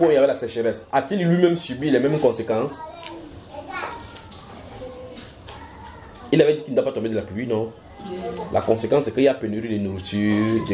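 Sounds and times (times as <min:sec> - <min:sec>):
speech: 0:00.0 - 0:03.9, 0:06.3 - 0:10.7
children chattering and calling out: 0:01.8 - 0:06.6, 0:07.7 - 0:10.7.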